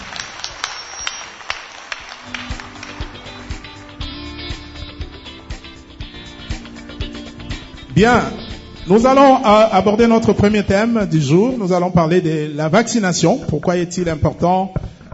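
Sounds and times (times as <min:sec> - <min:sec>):
audience applause: 0:00.0 - 0:04.0
speech: 0:08.0 - 0:15.1.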